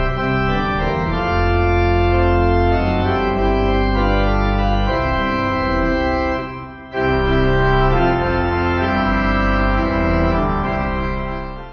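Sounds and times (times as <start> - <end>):
pipe organ: 0.0 - 11.7.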